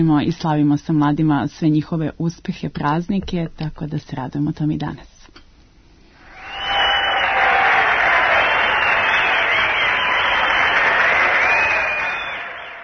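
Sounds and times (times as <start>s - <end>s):
speech: 0.0s - 5.1s
audience applause: 6.2s - 12.8s.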